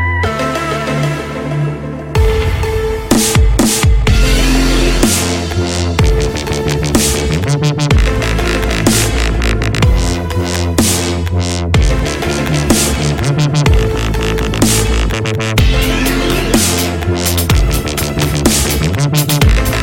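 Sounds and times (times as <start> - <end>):
dubstep remix: 0.2 - 19.8.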